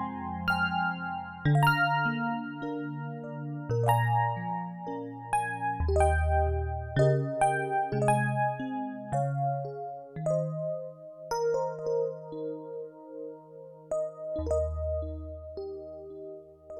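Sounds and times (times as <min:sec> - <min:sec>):
electric piano: 0:00.0 - 0:16.7.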